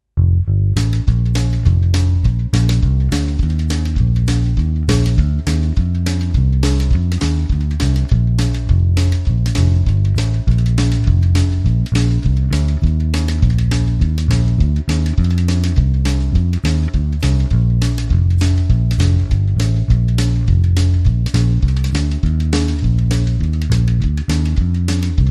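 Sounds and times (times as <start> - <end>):
down home bass line: 0.0 - 25.2.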